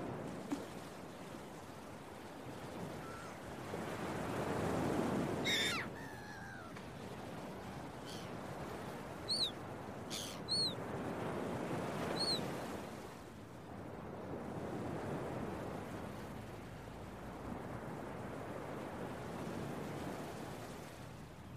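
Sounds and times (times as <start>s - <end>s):
surf and waves roaring: 0.0s - 21.5s
gull cries: 3.0s - 3.4s, 5.4s - 6.8s, 8.0s - 8.4s, 9.2s - 10.8s, 12.1s - 12.4s.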